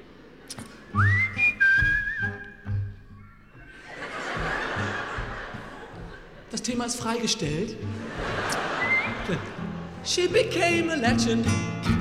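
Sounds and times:
audience whistling: 0.8s - 5.9s, 8.3s - 9.6s
laughter: 3.6s - 10.1s
speech: 6.6s - 8.6s, 9.3s - 11.9s.

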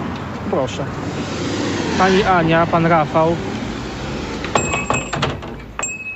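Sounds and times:
speech: 0.5s - 3.5s
old shop door bell ringing: 4.5s - 6.1s.

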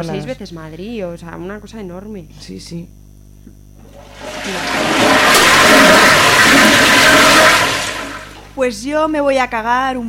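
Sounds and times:
speech: 0.0s - 5.0s, 8.6s - 10.0s
toilet being flushed: 3.8s - 8.6s.

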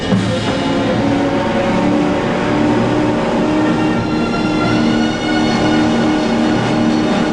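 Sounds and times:
speedboat with a shot-out fuel tank roaring at full throttle onto an island shore: 0.0s - 7.3s.

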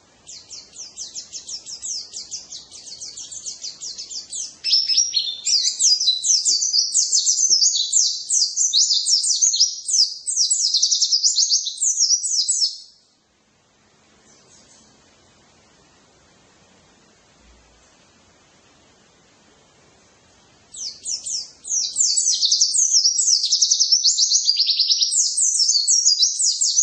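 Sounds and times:
white-eye twittering song with rapid chatter: 0.0s - 13.2s, 14.2s - 15.1s, 20.7s - 26.8s.

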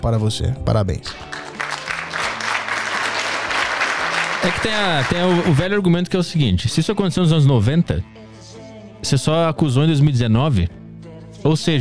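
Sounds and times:
speech: 0.0s - 1.5s, 4.4s - 8.2s, 9.0s - 10.8s, 11.4s - 11.8s
audience applause during a comedic mock courtroom scene: 1.2s - 5.7s.

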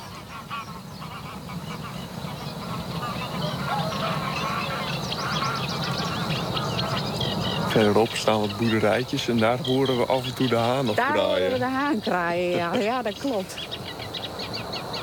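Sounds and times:
greylag geese flying over honking: 0.0s - 15.0s
steady low noise: 0.0s - 15.0s
laughter: 7.7s - 13.6s
speech: 7.8s - 13.7s.

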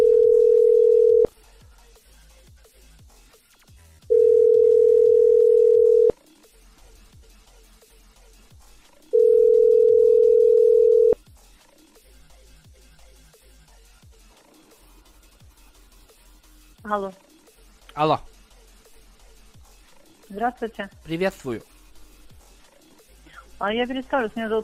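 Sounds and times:
telephone ringback tone while calling the Platiza microcredit company: 0.0s - 1.3s, 4.1s - 6.1s, 9.2s - 11.2s
speech: 16.9s - 17.2s, 18.0s - 18.3s, 20.4s - 21.8s, 23.6s - 24.6s.

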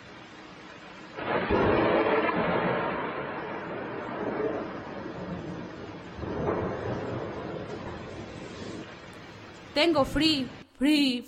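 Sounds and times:
rolling thunder in a thunderstorm: 1.2s - 9.1s
speech: 9.8s - 11.2s.

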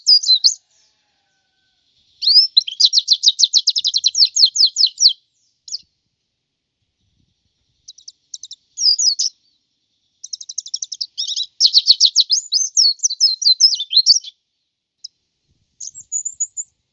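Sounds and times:
white-eye twittering song: 0.0s - 0.9s, 2.2s - 5.8s, 7.8s - 9.6s, 10.2s - 14.4s, 15.8s - 16.7s.

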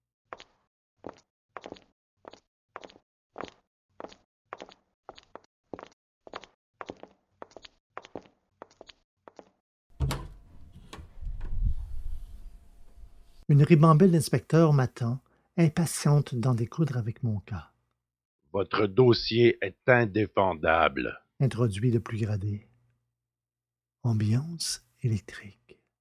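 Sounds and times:
footsteps: 0.4s - 9.6s
door bolts slamming shut: 10.0s - 11.6s
speech: 13.5s - 17.7s, 18.5s - 22.7s, 24.0s - 25.6s.

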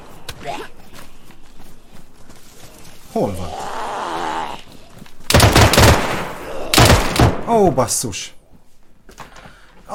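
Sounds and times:
speech: 3.1s - 3.6s, 7.5s - 8.4s
automatic weapon gunfire in a zombie video game: 5.3s - 7.5s.

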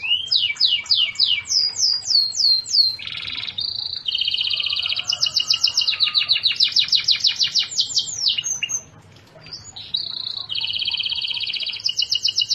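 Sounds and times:
canary singing: 0.0s - 12.5s.

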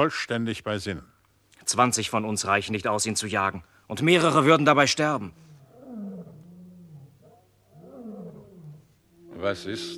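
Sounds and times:
speech: 0.0s - 5.5s, 9.4s - 9.9s
lion roaring: 5.2s - 9.9s.

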